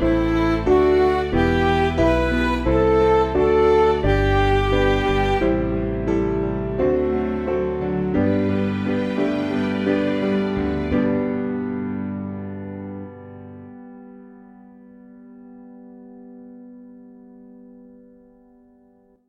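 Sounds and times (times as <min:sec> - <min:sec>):
MIDI music: 0:00.0 - 0:12.5.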